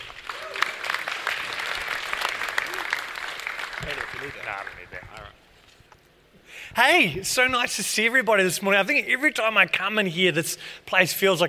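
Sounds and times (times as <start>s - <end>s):
audience applause: 0.0s - 5.0s
speech: 3.8s - 5.4s, 6.7s - 11.4s.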